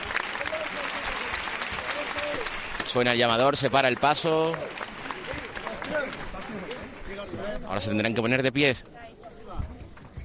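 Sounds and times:
crowd applauding procession bearers: 0.0s - 7.3s
speech: 2.9s - 4.8s, 5.9s - 9.0s.

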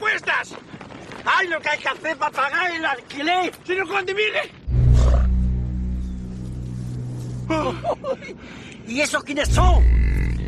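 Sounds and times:
speech: 1.4s - 4.6s, 7.5s - 10.2s
bison herd bellowing: 4.7s - 6.6s
laughter: 7.5s - 8.4s.

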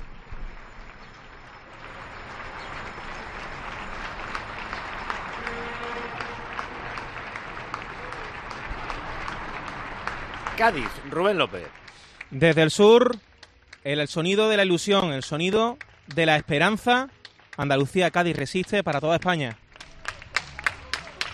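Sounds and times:
neighbours clapping from windows during quarantine: 0.0s - 21.3s
speech: 10.6s - 19.6s.

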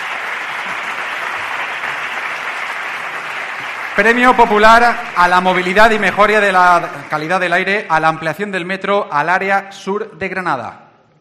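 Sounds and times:
audience applause: 0.0s - 7.4s
speech: 4.0s - 10.8s.

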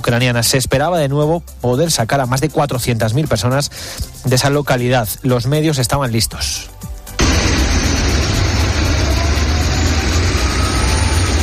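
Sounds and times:
speech: 0.1s - 6.8s
dozens of buses arriving in Mariupol: 7.2s - 11.4s.

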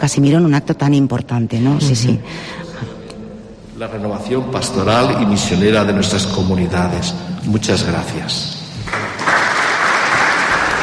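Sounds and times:
speech: 0.0s - 3.0s, 3.8s - 9.3s
audience applause: 8.8s - 10.8s.

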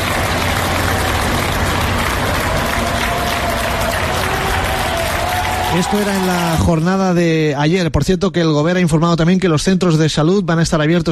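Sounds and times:
workers applauding health workers: 0.0s - 7.4s
speech: 5.7s - 11.1s.

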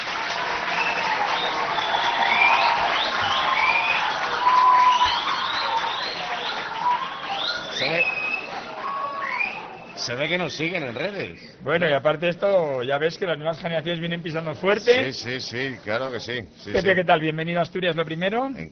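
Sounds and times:
crowd applauding: 0.0s - 10.0s
people cheering: 0.0s - 10.3s
high whistles: 0.7s - 10.0s
speech: 10.1s - 18.7s.

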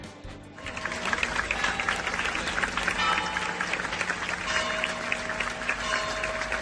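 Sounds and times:
crowd applauding outside church: 0.6s - 6.5s.

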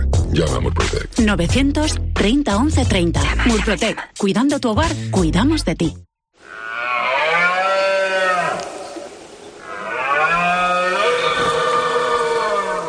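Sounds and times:
speech: 0.3s - 6.6s
red deer stag bellowing during rut: 6.4s - 12.8s.

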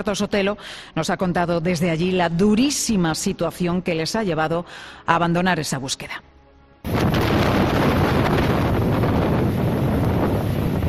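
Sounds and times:
speech: 0.0s - 7.3s
high waves crashing at sea: 6.9s - 10.8s
storm wind roaring at sea: 6.9s - 10.8s.

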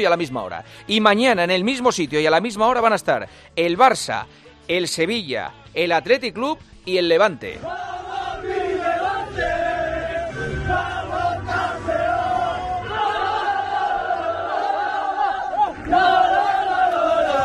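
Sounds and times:
speech: 0.0s - 8.6s
crowd roaring and chanting to celebrate a long-awaited sports success: 7.6s - 17.4s.

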